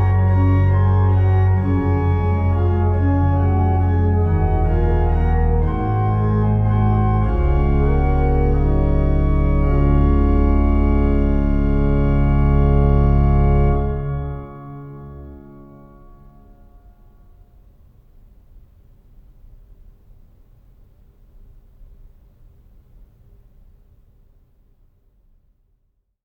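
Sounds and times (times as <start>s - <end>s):
organist playing prelude in D: 0.0s - 16.9s.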